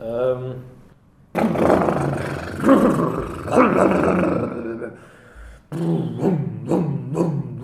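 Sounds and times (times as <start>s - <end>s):
voice imitating a cold motorboat engine struggling to start: 1.4s - 4.8s, 5.7s - 7.6s.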